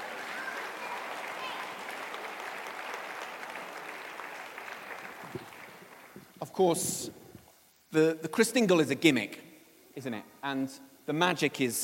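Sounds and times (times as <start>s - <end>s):
audience applause: 0.0s - 6.4s
speech: 6.5s - 7.2s, 7.9s - 11.8s.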